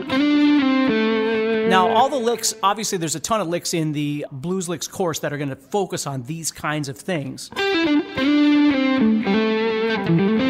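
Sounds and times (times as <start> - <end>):
distorted electric guitar note slid into: 0.0 - 2.9, 7.6 - 10.4
speech: 1.7 - 8.4, 10.0 - 10.4.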